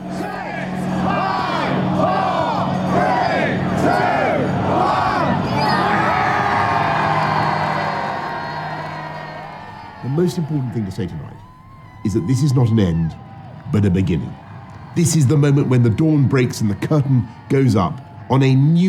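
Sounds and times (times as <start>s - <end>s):
large crowd shouting a countdown outside parliament: 0.0s - 18.8s
speech: 10.3s - 11.4s, 12.0s - 18.8s.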